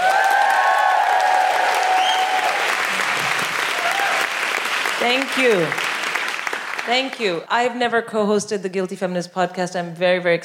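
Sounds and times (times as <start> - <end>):
audience woohooing: 0.0 - 4.6
audience applause: 0.0 - 7.2
speech: 5.0 - 5.8, 6.9 - 10.4.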